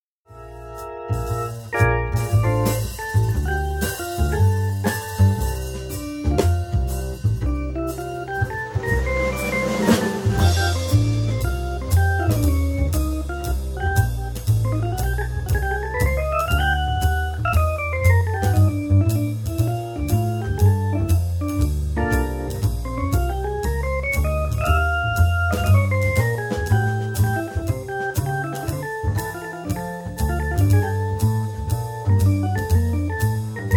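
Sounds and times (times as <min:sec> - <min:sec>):
trio playing: 0:00.3 - 0:33.7.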